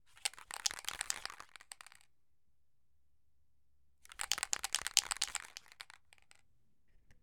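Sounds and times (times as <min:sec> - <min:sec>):
spray paint can shaking: 0:00.3 - 0:01.9, 0:04.2 - 0:06.3.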